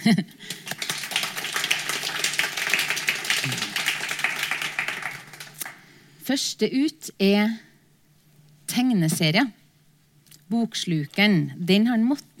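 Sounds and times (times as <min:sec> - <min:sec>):
speech: 0:00.0 - 0:00.5, 0:06.3 - 0:07.7, 0:08.8 - 0:09.6, 0:10.5 - 0:12.3
audience applause: 0:00.4 - 0:05.8.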